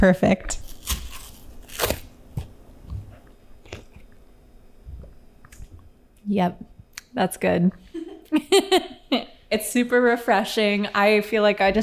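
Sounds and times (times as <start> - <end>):
speech: 0.0 - 0.6, 6.3 - 11.8
cartons of tea cracking open: 0.6 - 2.6
laughter: 8.0 - 9.3.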